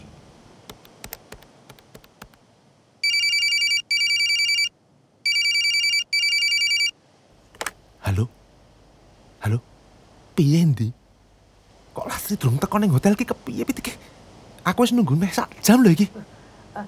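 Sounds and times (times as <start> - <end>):
telephone ringing on an outgoing call: 3.0 - 4.7, 5.3 - 6.9
speech: 8.2 - 8.4, 9.4 - 9.7, 10.4 - 11.0, 12.3 - 16.8.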